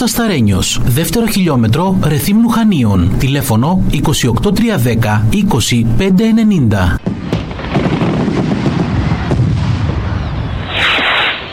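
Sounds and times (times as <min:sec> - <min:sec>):
speech: 0:00.0 - 0:07.3
firework rocket fizzing upward: 0:07.0 - 0:11.5
fireworks booming and crackling: 0:07.0 - 0:11.5.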